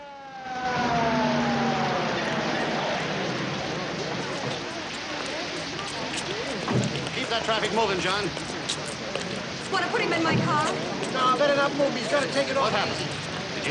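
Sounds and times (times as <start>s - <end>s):
police car siren winding down at a roadside accident scene: 0.0s - 4.1s
broadband road noise: 0.0s - 13.6s
speech: 7.4s - 8.5s, 9.7s - 13.2s.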